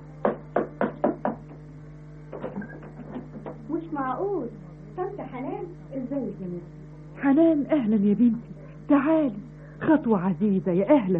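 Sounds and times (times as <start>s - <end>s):
steady low hum: 0.0s - 11.1s
knocking on a door: 0.2s - 1.6s
speech: 4.1s - 11.1s.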